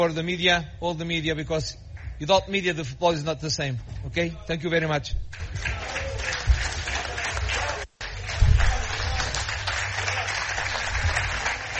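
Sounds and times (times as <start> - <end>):
speech: 0.0 - 6.0
journalists applauding: 5.3 - 11.7.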